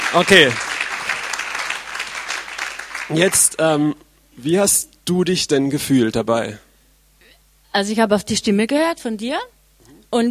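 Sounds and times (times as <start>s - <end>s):
audience clapping: 0.0s - 3.6s
speech: 0.1s - 0.7s, 3.1s - 6.6s, 7.7s - 10.2s.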